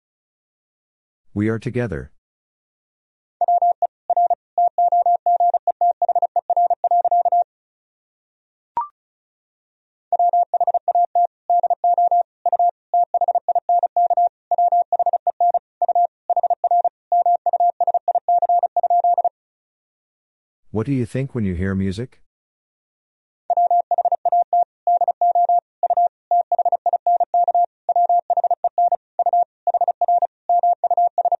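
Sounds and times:
speech: 1.4s - 2.2s, 20.8s - 22.2s
Morse code tones at 35 words per minute: 3.4s - 7.4s, 10.1s - 19.3s, 23.5s - 31.3s.

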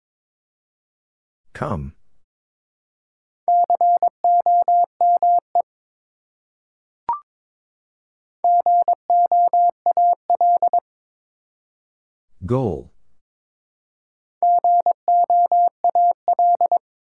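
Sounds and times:
person speaking: 1.6s - 2.0s, 12.4s - 13.0s
Morse code at 22wpm: 3.5s - 5.4s, 8.4s - 10.8s, 14.4s - 16.8s.

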